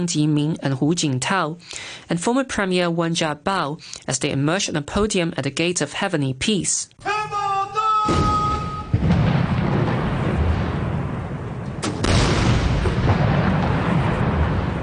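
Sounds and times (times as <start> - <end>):
speech: 0.0 - 7.4
ceremonial 17-gun salute booms at Tiananmen Square: 7.0 - 14.8.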